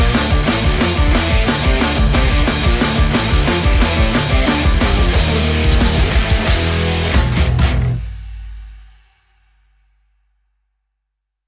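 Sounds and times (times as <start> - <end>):
aggressive rock metal music: 0.0 - 8.9.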